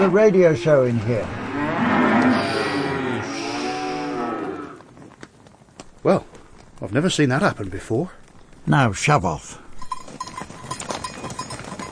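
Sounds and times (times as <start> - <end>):
speech: 0.0 - 1.4, 6.0 - 9.6
cows mooing: 0.0 - 4.9.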